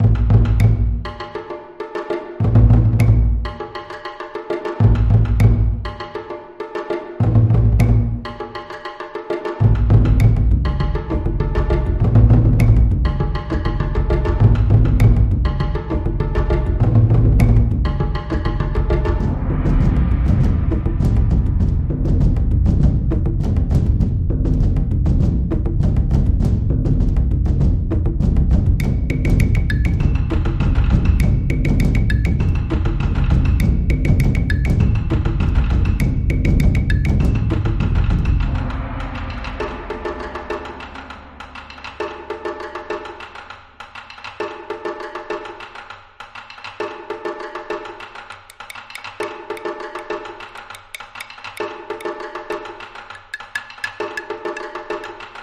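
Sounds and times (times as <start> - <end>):
Japanese style music: 0.0 - 55.4.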